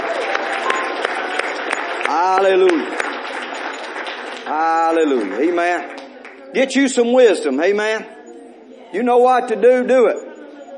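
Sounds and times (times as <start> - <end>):
audience hand clapping: 0.0 - 6.4
speech: 2.1 - 3.0, 4.5 - 8.2, 8.9 - 10.2.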